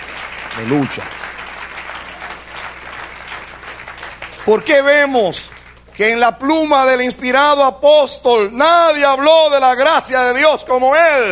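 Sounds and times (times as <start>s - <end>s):
church congregation clapping for the Lord: 0.0s - 6.4s
speech: 0.6s - 1.2s, 4.5s - 11.2s.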